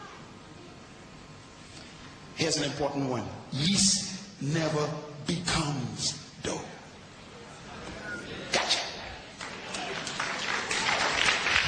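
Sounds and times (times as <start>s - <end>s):
speech: 2.4s - 6.6s
audience applause: 9.3s - 11.6s.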